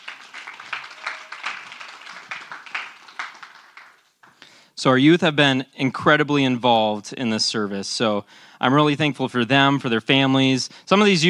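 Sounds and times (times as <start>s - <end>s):
audience applause: 0.0s - 4.4s
speech: 4.8s - 11.2s.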